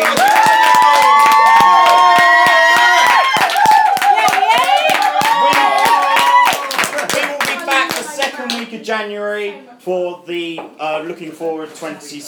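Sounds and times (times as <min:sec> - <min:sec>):
audience applause: 0:00.0 - 0:08.6
speech: 0:08.9 - 0:12.2.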